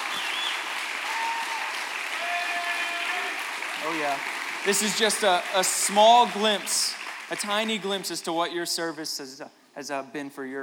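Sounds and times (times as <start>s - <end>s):
audience applause: 0.0s - 8.3s
speech: 3.8s - 10.6s.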